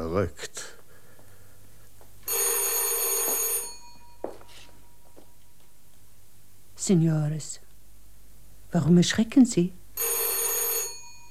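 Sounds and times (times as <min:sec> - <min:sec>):
speech: 0:00.2 - 0:00.6, 0:06.9 - 0:07.6, 0:08.7 - 0:10.2
telephone bell ringing: 0:02.2 - 0:04.6, 0:10.0 - 0:11.2.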